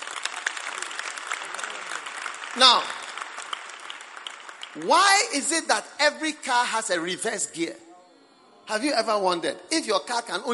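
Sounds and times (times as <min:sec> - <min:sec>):
audience clapping: 0:00.0 - 0:05.4
speech: 0:02.6 - 0:03.0, 0:04.8 - 0:07.8, 0:08.7 - 0:10.5.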